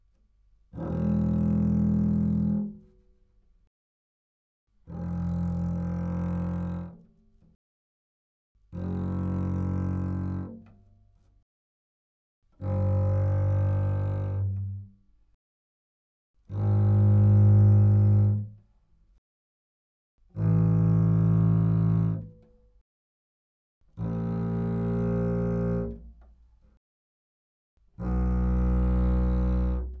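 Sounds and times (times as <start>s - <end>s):
double bass: 0.7s - 2.9s, 4.9s - 7.0s, 8.7s - 10.7s, 12.6s - 15.0s, 16.5s - 18.6s, 20.3s - 22.4s, 23.9s - 26.2s, 28.0s - 29.9s.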